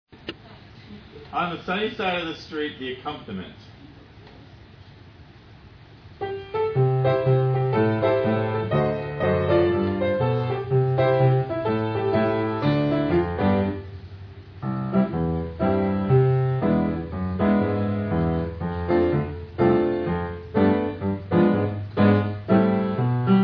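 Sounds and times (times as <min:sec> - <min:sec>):
audition accompaniment music: 0:06.2 - 0:23.4.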